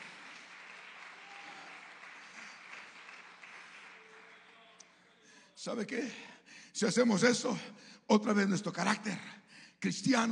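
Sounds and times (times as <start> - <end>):
audience applauding: 0.0 - 5.0
speech: 5.6 - 10.3.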